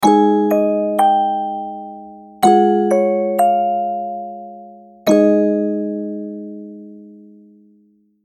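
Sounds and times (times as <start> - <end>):
mysterious music box melody: 0.0 - 7.2.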